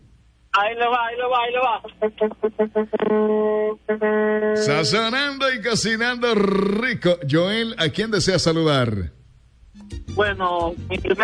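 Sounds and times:
speech: 0:00.6 - 0:09.2, 0:09.8 - 0:11.2
truck horn honking: 0:02.6 - 0:05.1.

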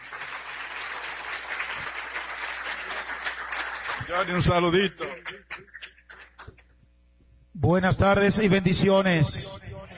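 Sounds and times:
audience applause: 0:00.0 - 0:06.5
speech: 0:04.1 - 0:05.8, 0:07.6 - 0:09.6.

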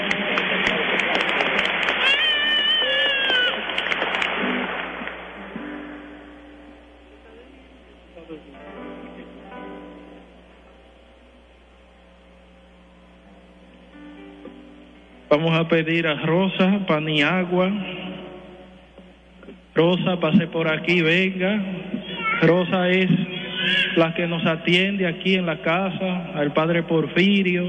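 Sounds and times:
applause: 0:00.0 - 0:05.4
speech: 0:15.4 - 0:18.0, 0:19.8 - 0:27.6.

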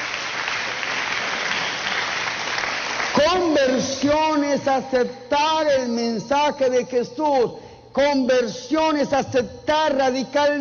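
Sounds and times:
audience applause: 0:00.0 - 0:03.2
speech: 0:03.3 - 0:10.5.

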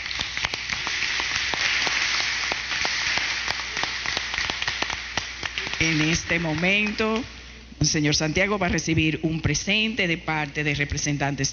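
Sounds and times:
crowd applauding: 0:00.0 - 0:07.2
speech: 0:05.8 - 0:11.5.

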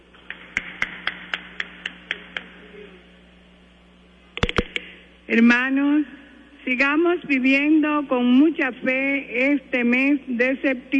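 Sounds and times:
audience hand claps: 0:00.2 - 0:02.6, 0:04.4 - 0:04.9
speech: 0:05.3 - 0:10.9.

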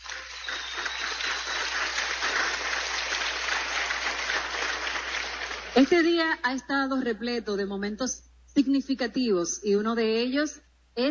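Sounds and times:
loud applause: 0:00.0 - 0:05.9
speech: 0:05.8 - 0:11.0.

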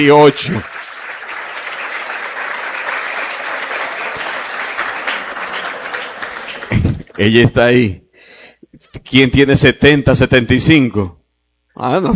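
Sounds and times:
speech: 0:00.0 - 0:00.8, 0:07.2 - 0:08.0, 0:08.9 - 0:11.2, 0:11.8 - 0:12.1
audience applause: 0:00.0 - 0:07.3.

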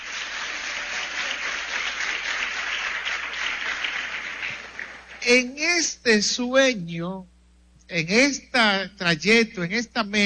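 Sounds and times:
audience applause: 0:00.0 - 0:05.2
speech: 0:05.2 - 0:07.3, 0:07.9 - 0:10.2.

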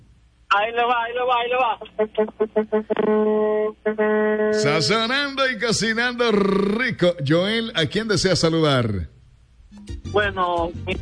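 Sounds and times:
speech: 0:00.5 - 0:09.2, 0:09.8 - 0:11.0
truck horn honking: 0:02.2 - 0:05.2.

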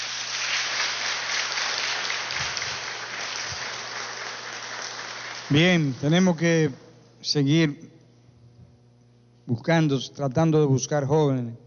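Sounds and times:
audience applause: 0:00.0 - 0:06.6
speech: 0:05.5 - 0:08.0, 0:09.5 - 0:11.6.

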